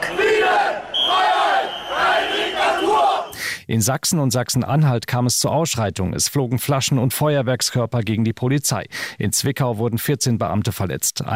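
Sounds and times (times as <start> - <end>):
street protest crowd chanting outdoors: 0.0 - 3.4
speech: 3.7 - 11.3.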